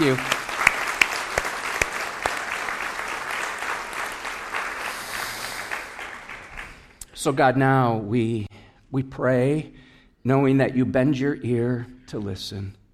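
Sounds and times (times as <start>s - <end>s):
crowd applause: 0.0s - 7.0s
speech: 0.1s - 0.4s, 7.2s - 12.8s.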